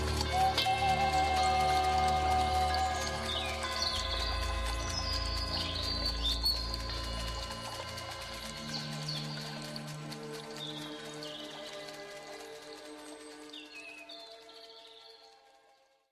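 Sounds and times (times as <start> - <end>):
natural shamanic drum: 0.0 - 10.6.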